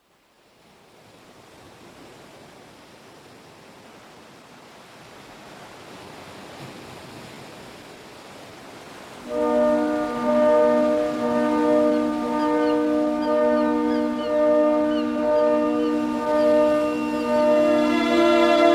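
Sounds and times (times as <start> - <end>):
orchestral intro: 9.3 - 18.7.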